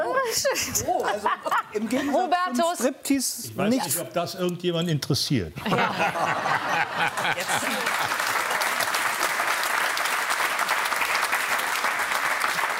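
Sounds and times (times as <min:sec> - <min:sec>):
laughter and voices: 0:00.0 - 0:02.6, 0:05.6 - 0:08.5
speech: 0:00.3 - 0:08.2
audience applause: 0:06.2 - 0:12.7.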